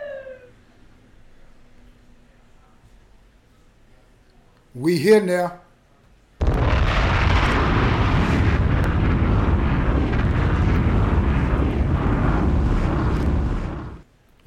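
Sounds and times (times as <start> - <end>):
speech: 4.8 - 5.6
thunder rumbling: 6.5 - 14.1.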